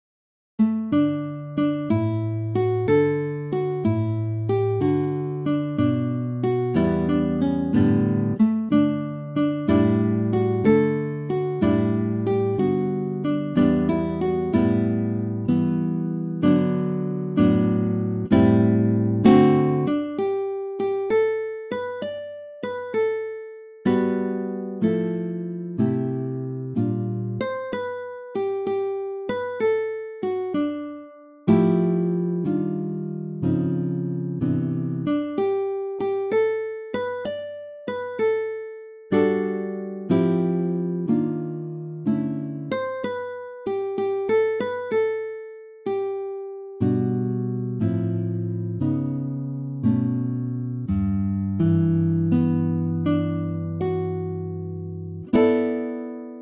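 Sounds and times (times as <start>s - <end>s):
guitar: 0.6s - 56.4s.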